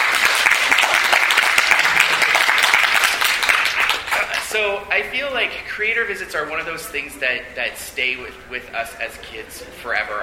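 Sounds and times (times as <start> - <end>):
audience applause: 0.0 - 4.4
speech: 4.6 - 10.2.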